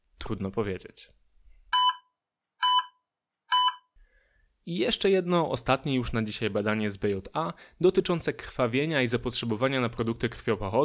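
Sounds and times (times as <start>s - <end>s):
speech: 0.3s - 1.2s, 4.7s - 10.8s
anesthesia monitor alarm beeps: 1.8s - 3.9s.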